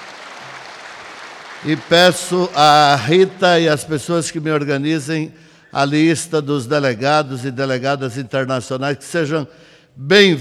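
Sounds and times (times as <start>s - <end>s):
audience applause for an international delegation: 0.0s - 3.1s
speech: 1.6s - 10.3s.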